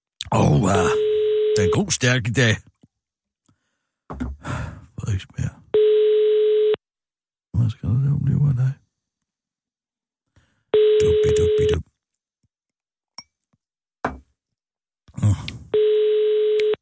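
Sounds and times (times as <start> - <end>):
speech: 0.3 - 2.7, 4.1 - 5.9, 7.7 - 8.8
phone call ringing: 0.8 - 2.0, 5.7 - 6.8, 10.8 - 11.8, 15.8 - 16.8.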